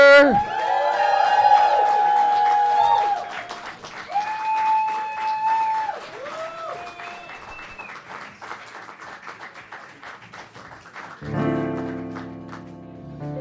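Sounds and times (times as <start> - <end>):
live comedy audience whooping and shouting at UCB East in New York City: 0.0 - 7.6
live comedy audience clapping at UCB East in New York City: 0.3 - 13.3.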